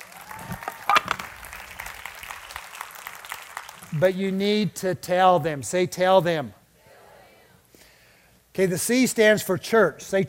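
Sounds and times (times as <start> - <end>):
audience applause: 0.0 - 4.2
speech: 3.9 - 6.6, 8.6 - 10.2.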